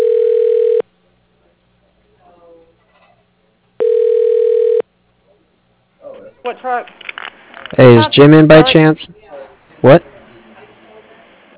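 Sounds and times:
phone line ringing during call transfer: 0.0s - 0.8s, 3.8s - 4.8s
speech: 6.6s - 7.0s, 7.8s - 9.2s, 9.8s - 10.1s.

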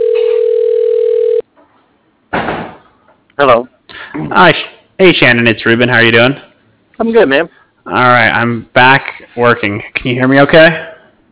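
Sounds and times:
ringback tone of an outgoing phone call: 0.0s - 1.4s
speech: 3.4s - 3.7s, 4.4s - 10.9s.

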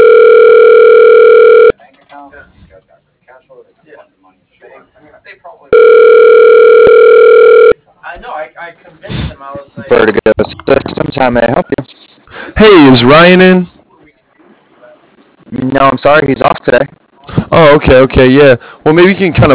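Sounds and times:
telephone ringing while on hold: 0.0s - 1.7s, 5.7s - 7.8s
speech: 11.2s - 11.5s, 12.6s - 13.7s, 15.8s - 19.5s.

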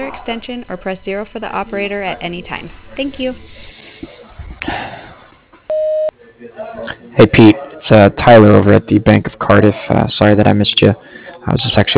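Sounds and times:
speech: 0.0s - 5.0s, 6.4s - 11.9s
voicemail message tone: 5.7s - 6.1s.

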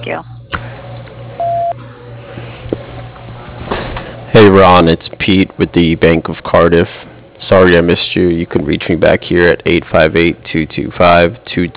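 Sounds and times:
speech: 0.0s - 0.3s, 4.4s - 11.7s
low electrical hum: 0.0s - 11.7s
answering machine beep: 1.4s - 1.8s.

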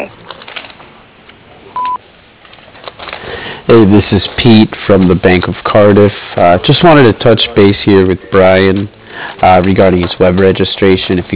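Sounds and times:
speech: 0.0s - 0.2s, 3.7s - 11.3s
answering machine beep: 1.8s - 2.0s.

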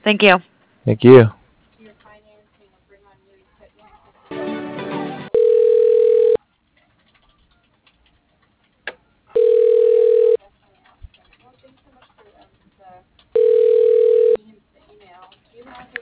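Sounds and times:
speech: 0.0s - 1.4s
phone line ringing during call transfer: 5.3s - 6.4s, 9.4s - 10.4s, 13.4s - 14.4s.

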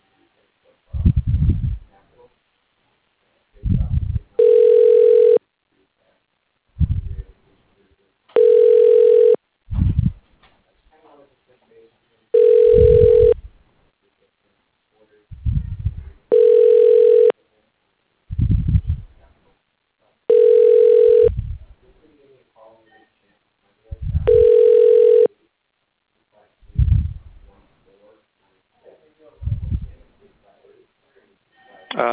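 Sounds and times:
low sounds: 0.0s - 4.7s, 5.4s - 8.3s, 9.7s - 16.4s, 17.2s - 20.3s, 21.2s - 32.1s
telephone ringing while an automated phone system tries an extension: 4.4s - 5.4s, 8.4s - 9.4s, 12.4s - 13.4s, 16.3s - 17.3s, 20.3s - 21.3s, 24.3s - 25.3s.

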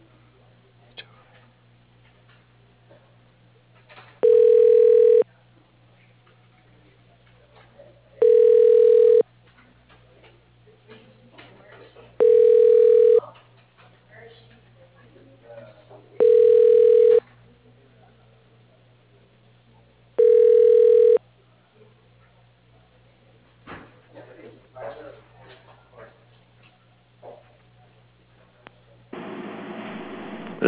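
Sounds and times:
telephone ringback tone while a call is transferred to an extension: 4.2s - 5.2s, 8.2s - 9.2s, 12.2s - 13.2s, 16.2s - 17.2s, 20.2s - 21.2s
low steady telephone line hum: 29.2s - 30.6s.

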